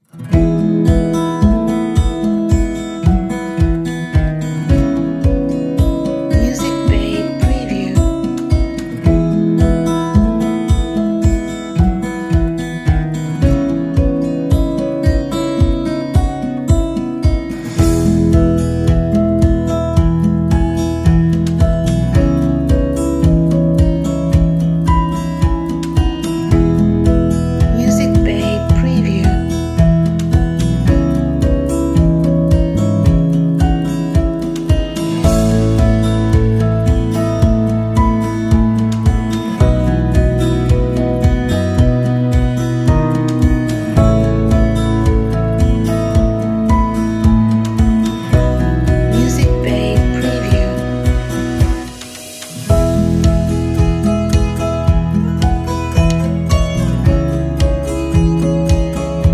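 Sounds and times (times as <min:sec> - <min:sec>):
calm inspirational acoustic music: 0:00.0 - 0:59.3.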